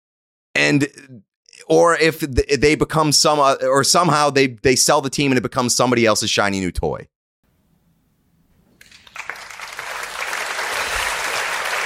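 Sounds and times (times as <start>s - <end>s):
speech: 0.6s - 7.2s
audience applause: 8.8s - 11.8s.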